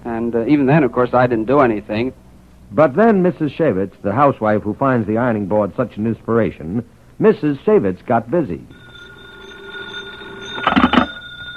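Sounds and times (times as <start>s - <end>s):
speech: 0.1s - 8.8s
telephone ringing: 8.7s - 11.5s.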